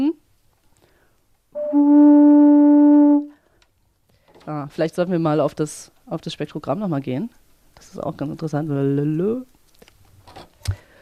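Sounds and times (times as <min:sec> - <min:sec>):
pipes sounding a low reedy tone: 0:01.6 - 0:03.4
speech: 0:04.7 - 0:09.6.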